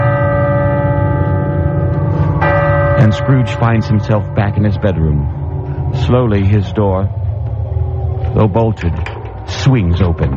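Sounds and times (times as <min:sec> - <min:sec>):
steeple clock bell striking: 0:00.0 - 0:07.6
speech: 0:03.0 - 0:07.2, 0:08.4 - 0:10.3.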